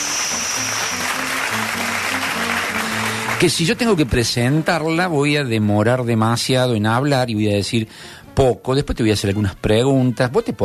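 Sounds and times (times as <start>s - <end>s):
applause from many hands clapping: 0.0s - 4.9s
speech: 3.4s - 10.6s.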